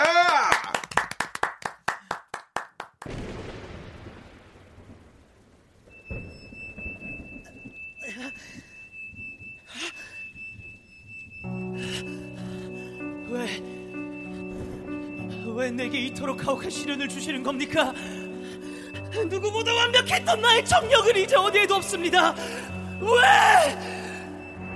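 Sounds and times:
rapid hand claps: 0:00.0 - 0:03.1
speech: 0:15.6 - 0:18.2, 0:19.2 - 0:23.9.

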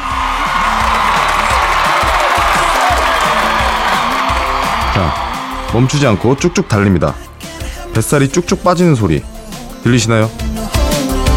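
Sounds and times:
crowd cheering and shouting: 0:00.0 - 0:08.8
speech: 0:05.0 - 0:07.2, 0:08.0 - 0:10.4.

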